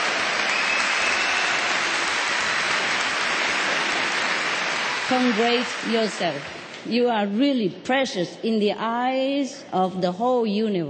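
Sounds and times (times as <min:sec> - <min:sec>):
audience applause: 0:00.0 - 0:06.7
speech: 0:05.1 - 0:10.8.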